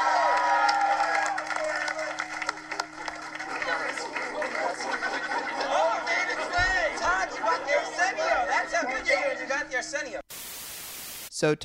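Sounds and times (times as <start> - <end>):
studio audience cheering with whoops and yells: 0.0 - 9.6
laughter: 1.3 - 9.6
speech: 11.4 - 11.6.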